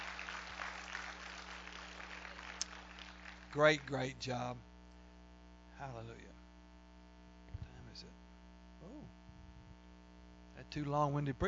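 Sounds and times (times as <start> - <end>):
audience clapping: 0.0 - 4.3
faint low hum: 0.0 - 11.4
speech: 3.6 - 4.7, 5.8 - 6.4, 8.0 - 8.2, 8.8 - 9.2, 10.6 - 11.4.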